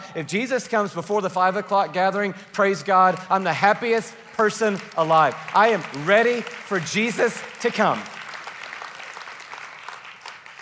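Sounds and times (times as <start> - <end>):
speech: 0.2 - 8.2
church congregation applauding: 2.8 - 10.5.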